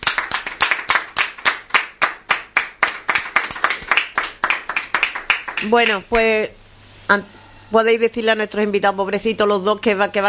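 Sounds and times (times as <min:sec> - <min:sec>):
hand clapping: 0:00.0 - 0:06.1
speech: 0:05.6 - 0:10.2.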